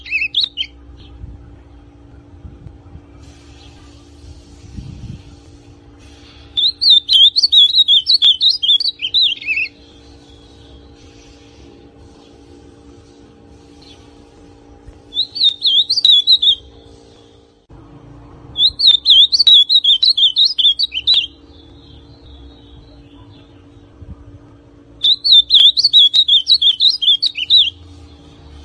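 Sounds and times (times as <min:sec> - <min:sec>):
ultramarine grosbeak song: 0:00.0 - 0:01.2, 0:06.2 - 0:11.6, 0:15.1 - 0:17.4, 0:18.6 - 0:23.8, 0:25.0 - 0:28.3.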